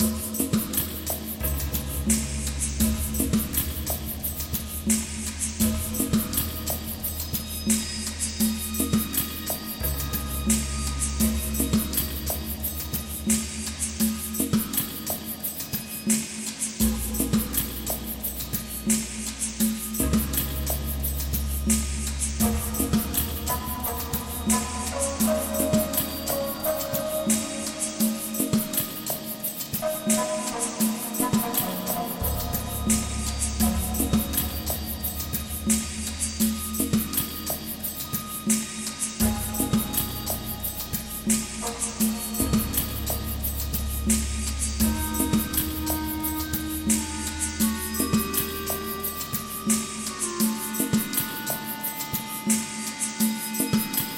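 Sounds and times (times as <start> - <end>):
calm wilderness desert ambience: 0.0 - 54.1.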